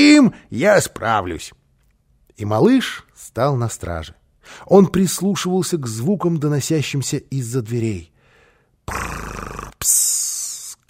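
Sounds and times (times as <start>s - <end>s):
speech: 0.0s - 1.6s, 2.4s - 8.1s, 8.9s - 10.2s
voice imitating a sleeping man's snoring: 8.9s - 10.8s.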